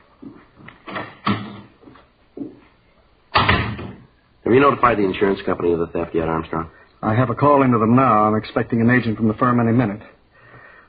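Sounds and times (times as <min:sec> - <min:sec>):
door opening and closing: 0:00.8 - 0:01.8, 0:03.3 - 0:04.1
speech: 0:04.5 - 0:10.1.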